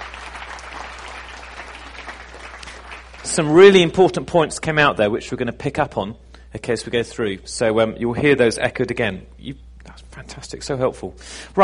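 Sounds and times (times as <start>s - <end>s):
audience applause thanking a speaker: 0.0s - 3.9s
speech: 3.3s - 11.6s.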